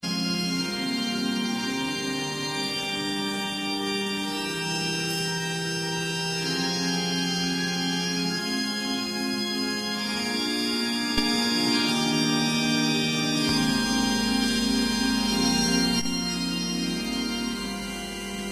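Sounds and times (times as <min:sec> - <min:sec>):
organ overture improvisation: 0:00.0 - 0:18.5.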